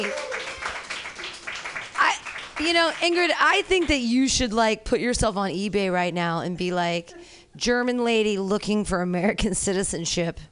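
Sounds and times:
speech: 0.0 - 0.3, 2.6 - 10.5
audience clapping: 0.0 - 4.0.

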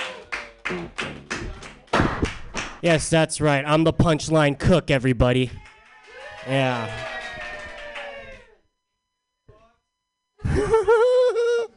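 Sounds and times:
people cheering: 0.0 - 1.8, 5.6 - 8.6
comedy-workshop audience clapping as a comedian is introduced: 0.0 - 2.8, 5.5 - 8.6
speech: 0.7 - 1.2, 2.8 - 5.7, 6.4 - 7.1
laughter: 10.4 - 11.7.

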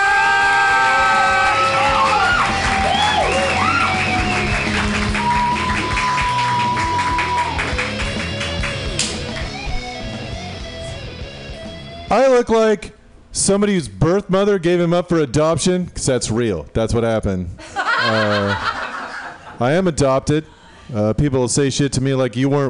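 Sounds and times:
cheers and whoops: 0.0 - 7.8
crowd applauding: 0.0 - 9.7
speech: 12.4 - 18.8, 19.6 - 22.6
laughter: 17.6 - 19.6.

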